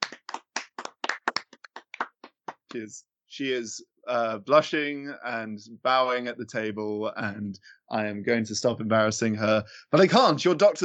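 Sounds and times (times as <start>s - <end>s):
hand clapping: 0.0s - 2.8s
speech: 2.7s - 10.8s.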